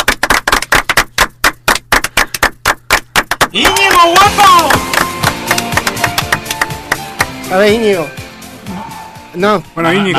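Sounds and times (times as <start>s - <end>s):
loud steady clapping: 0.0s - 8.0s
speech: 3.5s - 5.0s, 7.5s - 8.2s, 9.3s - 10.1s.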